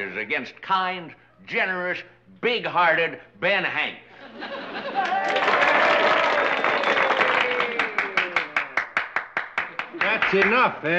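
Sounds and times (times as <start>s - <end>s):
speech: 0.0s - 5.6s, 10.0s - 10.9s
laughter: 4.1s - 6.5s
audience clapping: 4.8s - 10.8s.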